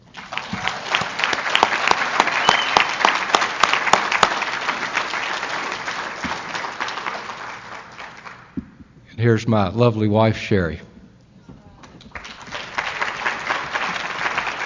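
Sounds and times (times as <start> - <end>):
audience round of applause: 0.0 - 8.6, 11.8 - 14.6
speech: 9.2 - 10.9.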